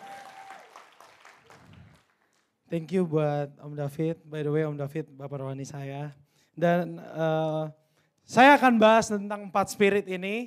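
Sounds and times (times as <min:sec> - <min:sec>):
audience applause: 0:00.0 - 0:02.4
speech: 0:02.7 - 0:10.4.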